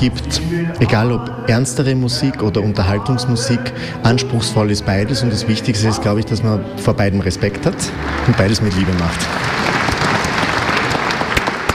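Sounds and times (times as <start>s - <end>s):
speech: 0.0s - 9.5s
audience applause in the concert hall of the Kurhaus in Bad Ischl: 7.5s - 11.7s.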